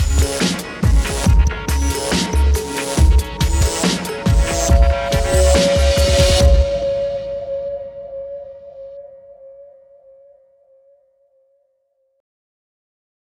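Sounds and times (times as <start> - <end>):
electronic music: 0.0 - 9.5.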